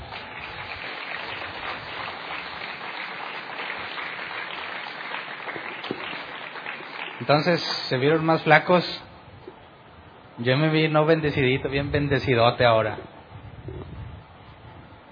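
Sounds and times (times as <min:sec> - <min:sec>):
audience applause: 0:00.0 - 0:07.9
speech: 0:07.2 - 0:09.0, 0:10.4 - 0:13.1.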